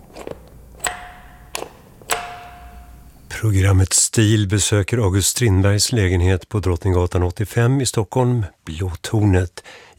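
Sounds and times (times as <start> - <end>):
old apartment doorbell ringing: 0.8 - 3.3
speech: 3.4 - 9.9.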